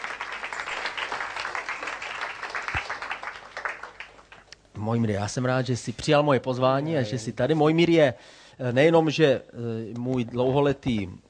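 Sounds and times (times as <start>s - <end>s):
audience applause: 0.0s - 4.5s
speech: 4.8s - 11.2s.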